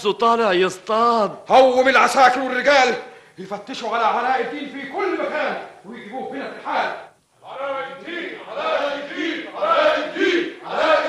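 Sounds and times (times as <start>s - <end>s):
speech: 0.0s - 7.0s
crowd shouting and chanting in a dramatised scene: 7.7s - 11.0s.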